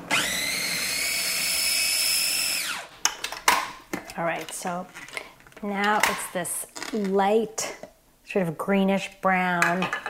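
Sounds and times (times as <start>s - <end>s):
food processor blending avocado mixture: 0.0s - 2.9s
speech: 4.2s - 10.0s.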